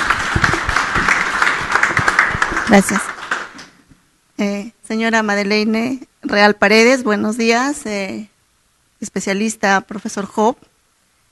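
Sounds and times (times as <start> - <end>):
audience applause: 0.0 - 3.8
speech: 2.7 - 3.1, 4.4 - 8.3, 9.0 - 10.7.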